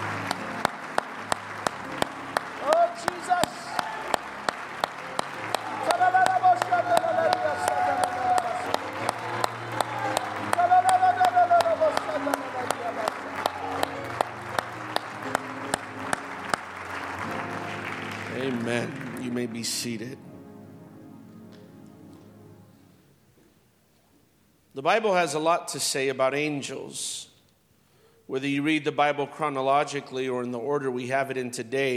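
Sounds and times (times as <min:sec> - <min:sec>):
audience hand clapping in praise: 0:00.0 - 0:20.2
speech: 0:19.6 - 0:20.2, 0:24.8 - 0:27.3, 0:28.3 - 0:31.9.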